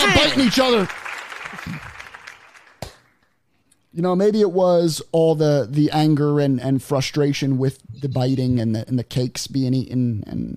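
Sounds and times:
hand clapping: 0.0s - 3.3s
speech: 0.1s - 1.0s, 3.9s - 10.5s.

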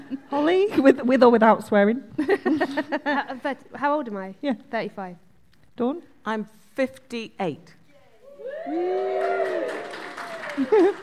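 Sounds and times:
speech: 0.3s - 5.2s, 5.8s - 7.8s, 8.6s - 9.8s, 10.6s - 11.0s
laughter: 2.2s - 3.4s, 10.2s - 11.0s
audience clapping and whooping cheers after a guest states her age: 8.4s - 11.0s.

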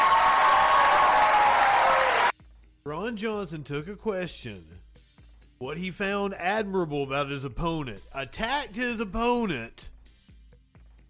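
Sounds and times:
audience applause: 0.0s - 2.3s
speech: 3.1s - 4.8s, 5.6s - 9.9s.

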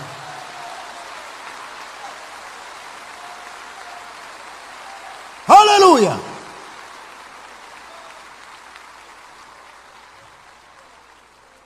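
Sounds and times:
audience applause: 0.0s - 11.6s
speech: 5.9s - 6.3s.

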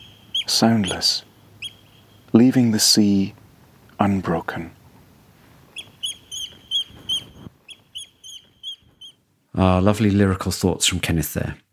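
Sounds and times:
oystercatchers calling: 0.0s - 3.0s, 5.6s - 9.2s
speech: 0.5s - 1.3s, 2.3s - 3.4s, 4.0s - 4.8s, 9.6s - 11.6s.

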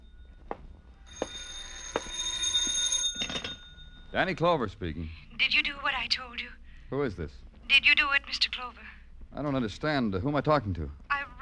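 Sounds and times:
telephone ringing: 0.0s - 4.2s
speech: 4.1s - 5.6s, 6.9s - 11.0s.

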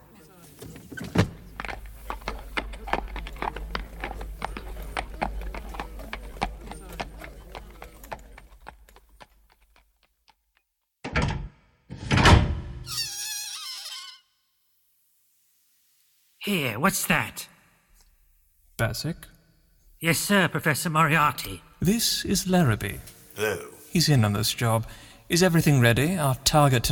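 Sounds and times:
horse hooves of a horse-drawn cab trotting down Baker Street: 0.5s - 10.7s
speech: 16.4s - 17.5s, 18.8s - 19.3s, 20.0s - 26.9s.

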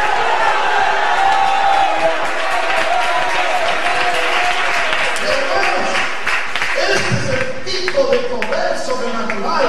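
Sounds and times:
audience shouting hallelujah and cheering: 0.0s - 7.6s
scattered clapping: 1.3s - 9.5s.

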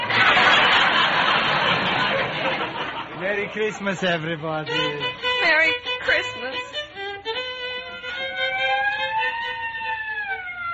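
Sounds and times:
laughter: 0.0s - 5.1s
speech: 3.2s - 6.2s
squad car siren pulling up: 7.6s - 10.7s.

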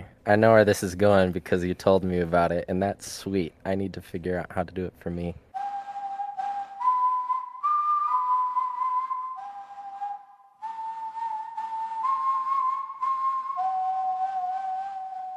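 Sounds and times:
speech: 0.2s - 5.4s
whistled melody phone ringtone: 5.6s - 15.3s.

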